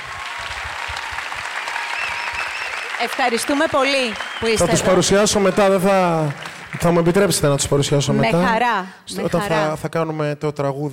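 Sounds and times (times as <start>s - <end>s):
audience applause: 0.0s - 8.0s
speech: 3.0s - 10.9s.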